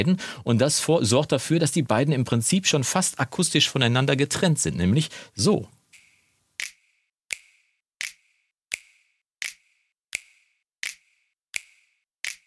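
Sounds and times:
speech: 0.0s - 5.8s
finger snaps in a compressed mix: 11.6s - 12.4s.

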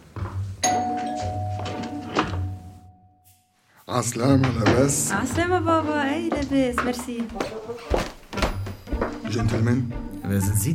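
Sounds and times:
doorbell chime: 0.6s - 3.4s
speech: 3.9s - 8.1s, 9.3s - 10.7s.

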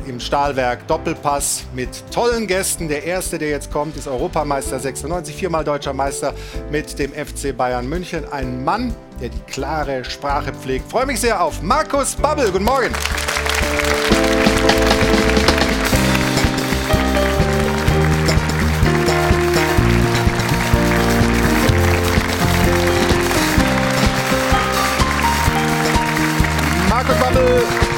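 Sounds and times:
speech: 0.0s - 14.8s
upbeat band music: 10.3s - 27.9s
steady applause from an audience: 12.7s - 27.9s.

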